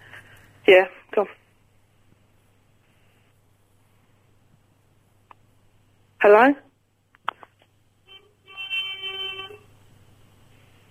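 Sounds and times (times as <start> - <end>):
speech: 0.7 - 1.4, 6.2 - 6.6
car horn beeping outside: 8.1 - 9.7.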